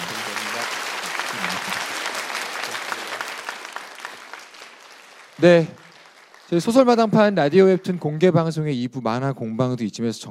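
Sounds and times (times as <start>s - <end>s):
audience applause: 0.0s - 7.8s
speech: 5.4s - 5.8s, 6.5s - 10.2s.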